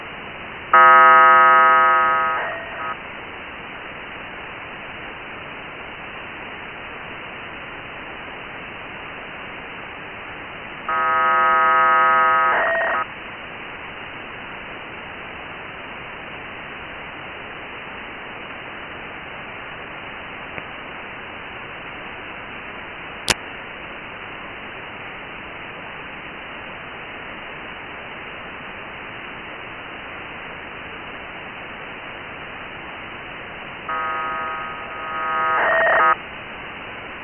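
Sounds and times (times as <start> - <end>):
1k2 BPSK radio data signal on 145880: 0.8 - 3.0, 10.9 - 13.1, 33.9 - 36.2.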